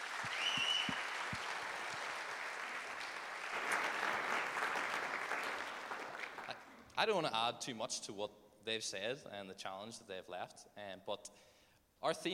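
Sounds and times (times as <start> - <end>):
audience applause: 0.0 - 6.8
high whistle: 0.2 - 1.2
speech: 7.0 - 12.3.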